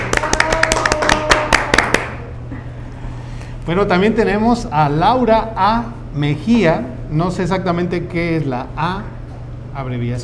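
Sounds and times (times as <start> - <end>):
applause: 0.0 - 2.3
speech: 3.7 - 9.2, 9.8 - 10.2.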